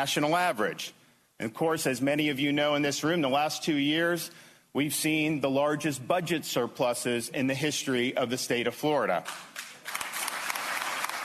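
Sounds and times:
speech: 0.0 - 9.6
audience applause: 9.6 - 11.2.

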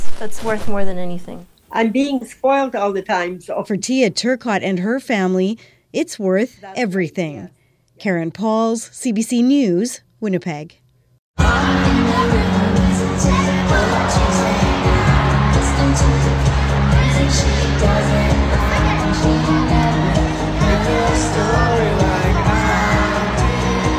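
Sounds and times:
speech: 0.2 - 10.8, 17.3 - 18.4
crowd of girls singing along at professional women's hockey league game: 11.4 - 23.9.

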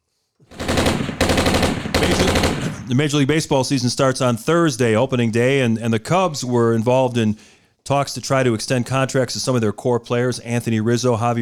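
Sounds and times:
automatic rifle gunfire sound effect: 0.5 - 3.2
speech: 2.9 - 11.4.

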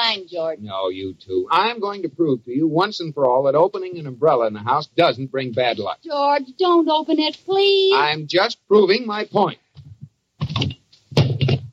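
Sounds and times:
speech: 0.1 - 9.6
banging and clatter: 9.8 - 11.7
hammer dropping onto a foot: 10.4 - 11.7.

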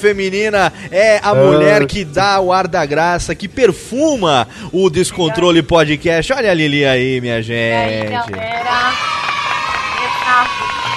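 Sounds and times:
speech: 0.0 - 9.2
audience cheering and clapping: 8.5 - 10.9.

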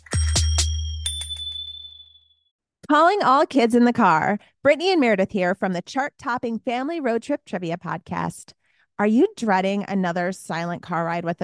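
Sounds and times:
bicycle bell ringing: 0.0 - 2.5
speech: 2.9 - 11.4.

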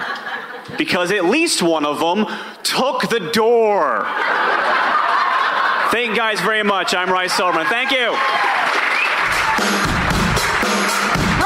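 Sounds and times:
laughter: 0.0 - 1.0, 3.9 - 9.6
speech: 0.7 - 4.5, 5.9 - 8.9, 9.6 - 9.9
audience applause after comedy set: 4.6 - 11.4.

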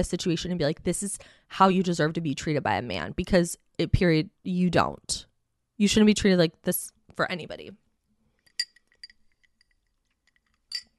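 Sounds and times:
speech: 0.0 - 7.8
glass clinks from sipping a glass of water: 8.5 - 10.9.

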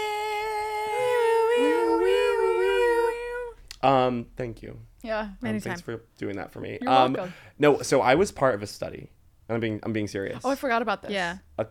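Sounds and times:
buzzy wailing alarm sound effect: 0.0 - 3.5
speech: 3.8 - 11.7.

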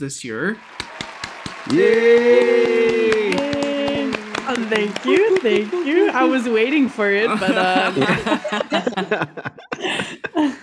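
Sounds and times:
speech: 0.0 - 0.9, 1.6 - 3.2, 4.5 - 10.6
applause: 0.4 - 8.5
laughter: 1.7 - 10.6.

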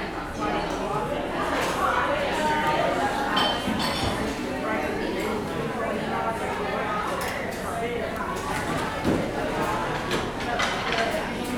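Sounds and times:
murmur of conversation at a busy cafe: 0.0 - 11.5
dishes or cutlery clinking: 3.3 - 4.4.

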